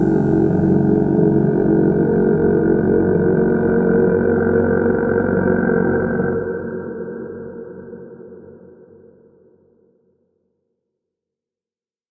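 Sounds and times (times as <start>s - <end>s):
drone: 0.0s - 7.6s.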